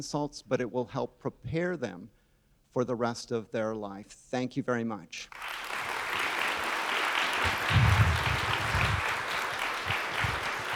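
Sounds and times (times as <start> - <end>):
speech: 0.0 - 2.2, 2.8 - 5.7
audience applause: 5.3 - 10.7.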